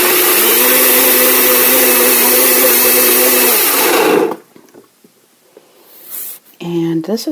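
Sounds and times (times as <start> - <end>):
blender whirring: 0.0 - 4.5.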